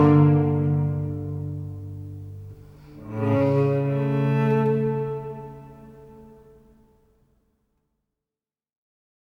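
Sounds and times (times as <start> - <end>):
first movement of an instrumental piece: 0.0 - 6.9.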